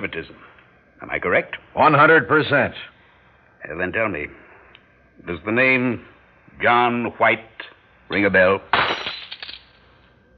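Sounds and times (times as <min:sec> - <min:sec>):
speech: 0:00.0 - 0:03.0, 0:03.6 - 0:04.4, 0:05.2 - 0:08.8
drink glass knocked over: 0:08.7 - 0:09.8.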